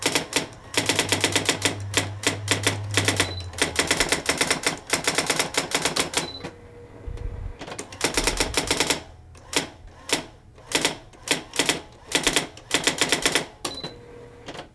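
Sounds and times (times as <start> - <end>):
typewriter typing: 0.0 - 6.5, 7.6 - 13.9.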